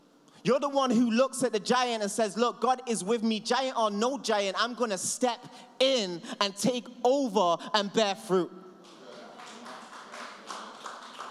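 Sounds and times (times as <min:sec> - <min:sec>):
speech: 0:00.4 - 0:08.6
weak audience clapping: 0:08.8 - 0:11.3.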